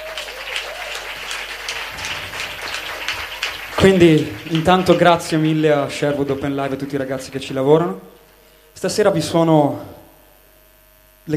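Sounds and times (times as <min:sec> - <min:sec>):
audience applause: 0:00.0 - 0:07.5
speech: 0:03.8 - 0:08.1, 0:08.8 - 0:10.0.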